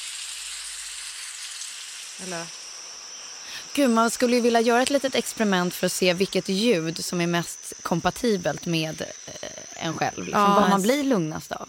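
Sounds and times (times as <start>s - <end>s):
rain sound from sleep app: 0.0s - 5.2s
speech: 2.2s - 2.6s, 3.8s - 11.6s.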